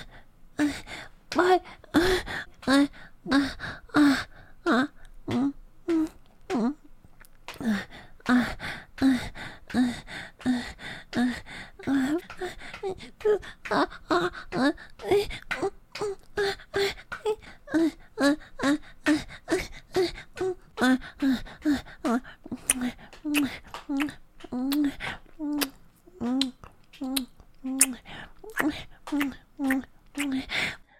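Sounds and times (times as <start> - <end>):
person making vocal noises: 0.6 - 6.9, 7.5 - 30.9.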